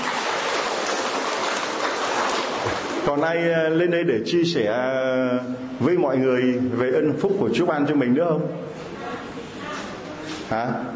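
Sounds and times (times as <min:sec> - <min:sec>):
audience applause: 0:00.0 - 0:03.1
speech: 0:03.1 - 0:08.7, 0:10.5 - 0:10.9.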